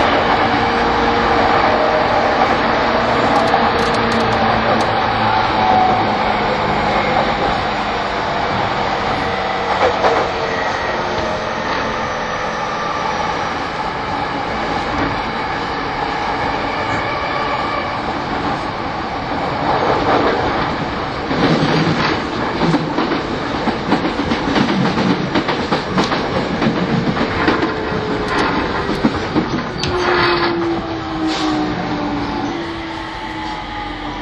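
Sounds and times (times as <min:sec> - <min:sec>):
E231 series Yamanote Line train running on the outer loop: 0:00.0 - 0:34.2.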